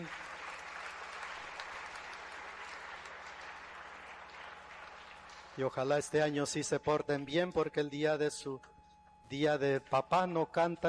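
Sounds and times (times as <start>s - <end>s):
audience applause: 0.0s - 5.7s
speech: 5.6s - 10.8s.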